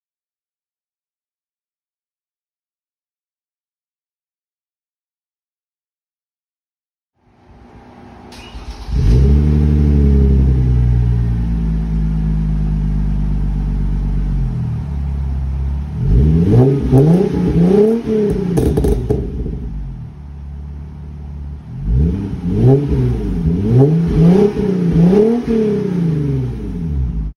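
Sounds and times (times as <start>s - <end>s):
Hyundai Genesis Coupe engine: 7.2s - 27.3s.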